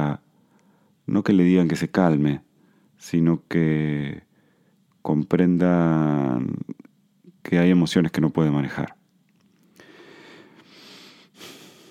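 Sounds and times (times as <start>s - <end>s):
deep breath drawn through the nose and mouth: 0.3s - 1.0s, 4.3s - 4.8s, 9.8s - 11.8s
speech: 1.1s - 4.3s, 5.0s - 9.0s.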